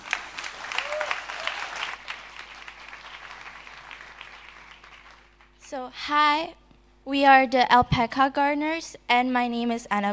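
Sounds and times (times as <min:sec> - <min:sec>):
audience applause: 0:00.0 - 0:05.5
speech: 0:05.7 - 0:10.1.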